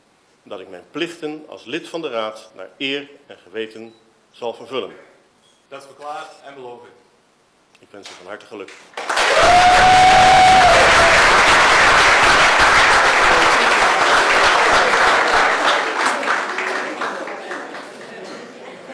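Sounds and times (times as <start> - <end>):
speech: 0.4 - 5.1, 5.7 - 7.0, 7.8 - 10.6
supporters applauding and cheering in a council chamber after a swearing-in: 8.9 - 18.0.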